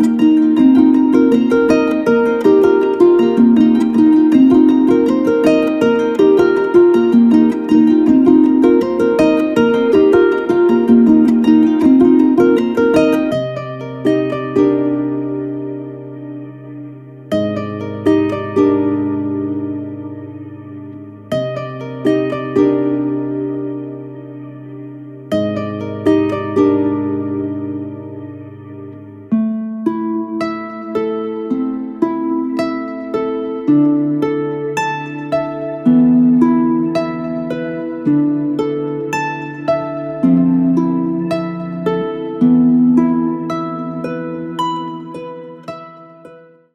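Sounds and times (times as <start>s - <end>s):
Celtic harp: 0.0s - 46.7s.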